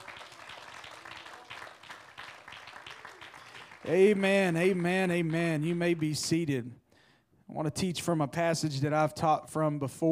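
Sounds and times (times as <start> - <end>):
audience clapping hands: 0.0 - 6.5
speech: 3.8 - 6.8, 7.6 - 10.1.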